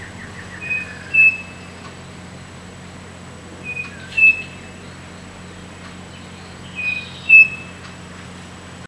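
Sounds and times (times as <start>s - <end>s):
bird whistles: 0.0s - 1.8s, 3.6s - 4.9s, 6.1s - 7.8s.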